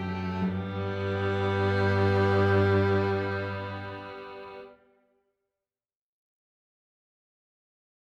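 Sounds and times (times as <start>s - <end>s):
string ensemble playing a chorale prelude in F major: 0.0s - 4.9s.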